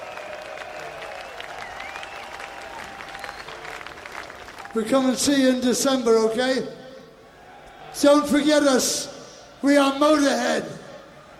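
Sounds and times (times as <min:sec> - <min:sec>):
concert audience cheering and applauding: 0:00.0 - 0:05.0
high whistles from crowd: 0:01.1 - 0:03.7
speech: 0:04.7 - 0:06.8, 0:08.0 - 0:10.8.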